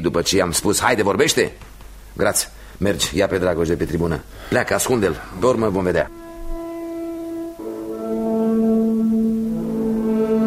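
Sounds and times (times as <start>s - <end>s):
speech: 0.0s - 6.2s
tulnic alphorn sounding an alarm: 6.0s - 10.4s.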